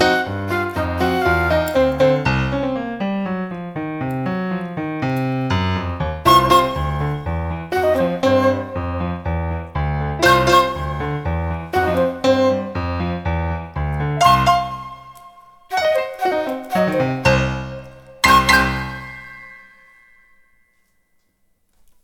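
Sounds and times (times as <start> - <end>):
flute part in jazz music: 0.0 - 2.7, 6.2 - 9.6, 10.2 - 13.4, 14.2 - 20.3
jazz music: 0.0 - 20.3.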